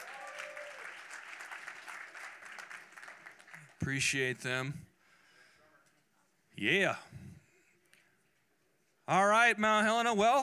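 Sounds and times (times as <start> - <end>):
church congregation applauding the worship team at a morning service: 0.0 - 4.4
speech: 3.8 - 4.9, 6.6 - 7.2, 9.1 - 10.4.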